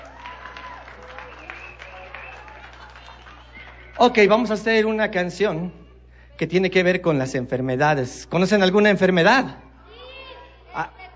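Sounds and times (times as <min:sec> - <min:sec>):
audience applause: 0:00.0 - 0:04.5
speech: 0:04.0 - 0:05.8, 0:06.4 - 0:09.6, 0:10.8 - 0:11.0.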